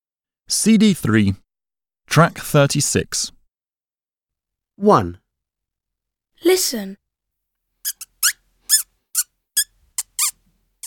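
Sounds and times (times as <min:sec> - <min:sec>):
speech: 0:00.5 - 0:01.4, 0:02.1 - 0:03.4, 0:04.8 - 0:05.2, 0:06.4 - 0:07.0
mouse squeaking: 0:07.9 - 0:10.8.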